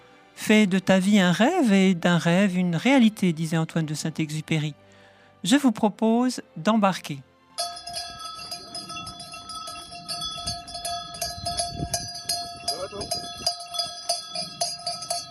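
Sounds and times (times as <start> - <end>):
speech: 0.4 - 7.3
sheep bells on a flock of ewes walking through town streets: 7.6 - 15.2.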